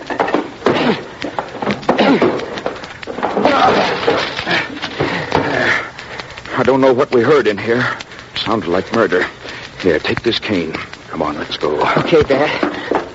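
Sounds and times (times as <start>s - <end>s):
locked door being broken down: 0.0s - 5.5s
speech: 0.9s - 1.1s, 2.1s - 2.4s, 6.7s - 12.9s.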